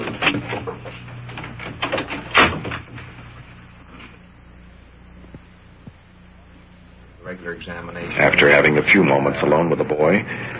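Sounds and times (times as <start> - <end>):
door being shut: 0.0 - 3.1
speech: 7.5 - 10.5.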